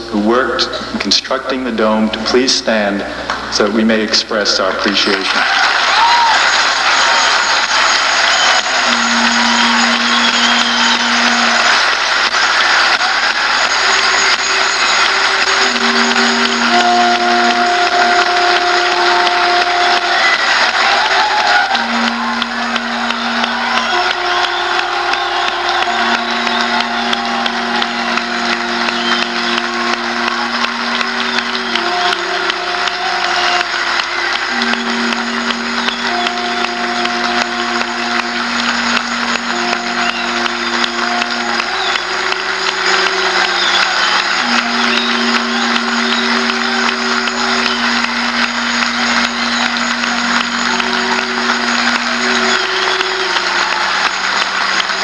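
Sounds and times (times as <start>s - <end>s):
applause: 0.3s - 55.0s.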